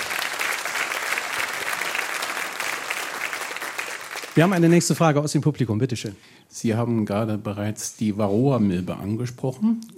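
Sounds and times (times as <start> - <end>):
audience applause: 0.0 - 4.9
speech: 4.4 - 9.9.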